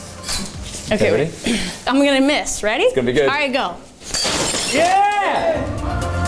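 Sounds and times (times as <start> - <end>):
speech: 0.9 - 3.9, 4.7 - 5.7
object struck with a pole shattering on the floor: 4.0 - 5.4
excited voices: 4.8 - 6.2.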